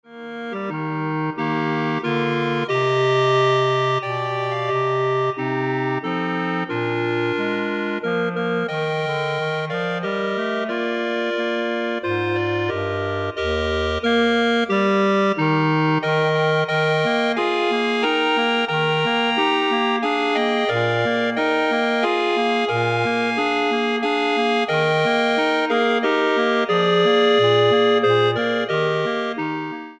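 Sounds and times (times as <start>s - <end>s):
clarinet ensemble playing: 0.1s - 29.9s.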